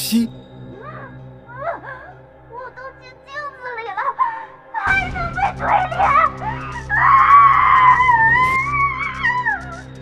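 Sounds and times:
speech: 0:00.1 - 0:00.4
long shrill scream: 0:04.8 - 0:09.9.

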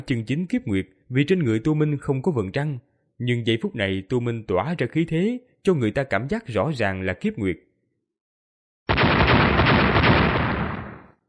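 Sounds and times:
speech: 0:00.0 - 0:07.7
explosions: 0:08.9 - 0:11.2.

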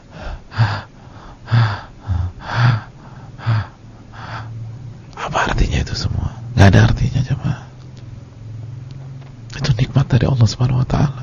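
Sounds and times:
person imitating short labored breathing with harsh gasping breaths: 0:00.0 - 0:04.6
speech: 0:06.0 - 0:07.4, 0:10.0 - 0:11.2.

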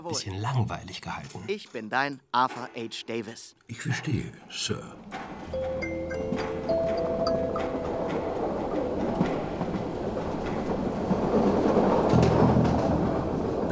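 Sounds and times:
speech: 0:00.0 - 0:06.5
moving train: 0:05.4 - 0:13.6.

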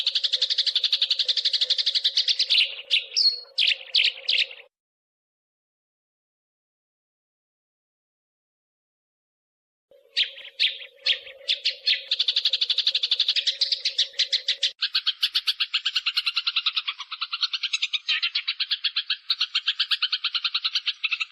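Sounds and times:
small bird chirping: 0:00.0 - 0:04.7, 0:09.9 - 0:21.3.

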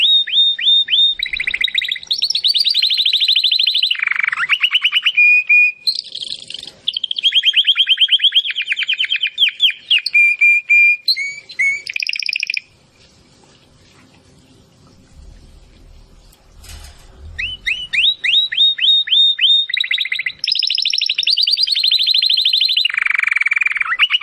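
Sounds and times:
domestic canary song: 0:00.0 - 0:12.8, 0:17.2 - 0:24.2
faint low rumbling: 0:14.7 - 0:18.3.

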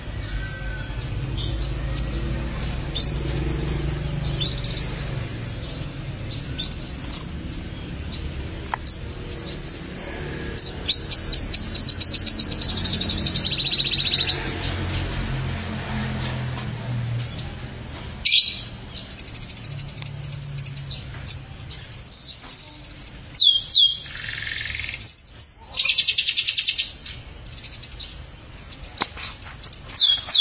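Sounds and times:
Atlantic canary singing: 0:00.0 - 0:16.2, 0:17.1 - 0:30.3.

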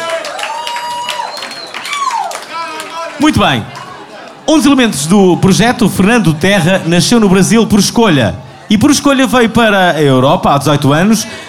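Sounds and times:
audience applause for a band at an alternative song festival: 0:00.0 - 0:04.3
speech: 0:03.2 - 0:03.8, 0:04.5 - 0:11.4.

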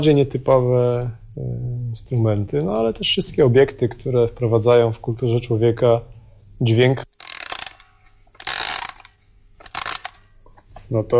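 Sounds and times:
speech: 0:00.0 - 0:07.0, 0:10.9 - 0:11.1
toilet paper holder music box mechanism whirring: 0:07.2 - 0:10.4.

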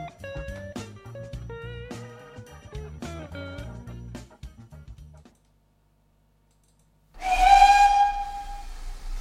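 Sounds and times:
train whistle signaling departure: 0:07.2 - 0:09.1.

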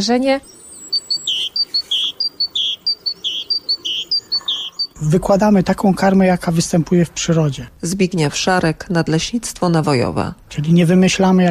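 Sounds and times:
speech: 0:00.0 - 0:00.6, 0:05.0 - 0:11.4
small birds chirping at a garden feeder: 0:00.0 - 0:05.2.

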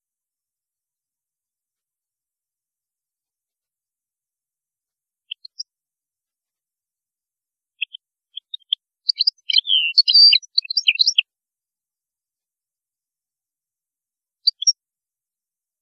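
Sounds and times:
European goldfinch twittering: 0:07.8 - 0:11.2.

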